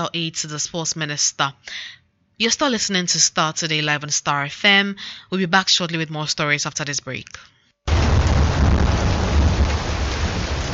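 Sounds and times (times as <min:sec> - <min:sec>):
speech: 0:00.0 - 0:08.0
heavy rain: 0:07.9 - 0:10.7
thunder: 0:07.9 - 0:10.7.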